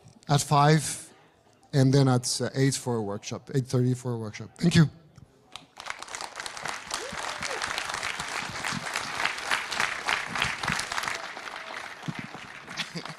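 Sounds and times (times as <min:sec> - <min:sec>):
speech: 0:00.3 - 0:01.0, 0:01.7 - 0:05.0
audience applause: 0:05.8 - 0:13.1.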